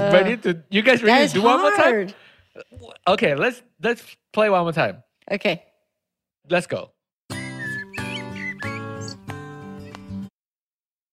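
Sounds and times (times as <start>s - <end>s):
speech: 0.1s - 5.7s, 6.5s - 7.0s
birds squeaking: 7.3s - 9.4s.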